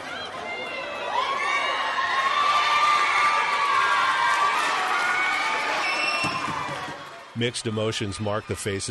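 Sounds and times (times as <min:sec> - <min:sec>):
crowd cheering: 0:00.0 - 0:08.8
speech: 0:07.4 - 0:08.8.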